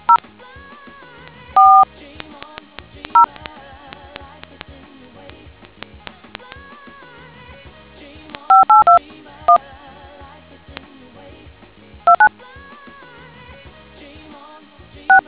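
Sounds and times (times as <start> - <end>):
DTMF tones: 0.0 - 0.2, 1.6 - 1.8, 8.5 - 9.6, 12.1 - 12.3.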